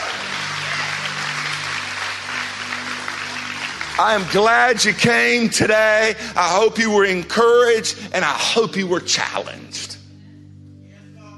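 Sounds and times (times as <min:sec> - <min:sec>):
audience clapping: 0:00.0 - 0:06.1
speech: 0:04.0 - 0:10.0.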